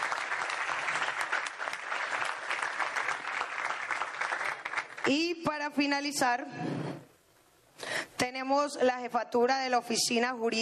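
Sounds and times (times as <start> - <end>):
audience applause: 0.0 - 5.1
speech: 5.0 - 6.9, 8.2 - 10.6.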